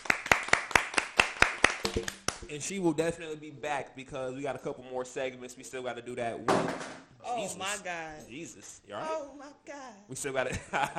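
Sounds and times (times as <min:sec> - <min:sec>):
round of applause: 0:00.0 - 0:02.5
speech: 0:02.0 - 0:10.9.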